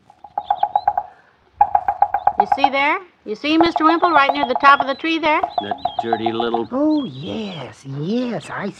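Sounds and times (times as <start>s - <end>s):
red-headed woodpecker pecking in an oak tree in a front yard: 0.0s - 2.9s, 3.5s - 6.7s
speech: 2.6s - 8.7s.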